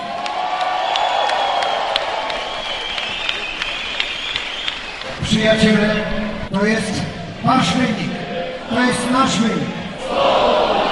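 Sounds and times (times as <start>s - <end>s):
crowd applauding and cheering: 0.0s - 6.2s
speech: 5.4s - 8.0s, 8.8s - 10.6s.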